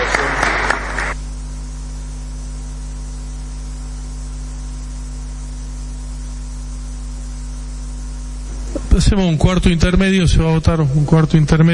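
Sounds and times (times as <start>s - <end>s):
crowd applause in the senate chamber: 0.0s - 1.2s
speech: 9.0s - 11.7s.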